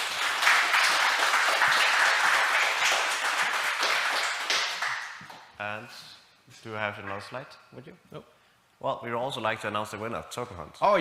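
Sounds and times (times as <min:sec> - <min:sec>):
audience applause: 0:00.0 - 0:05.2
speech: 0:05.6 - 0:10.9.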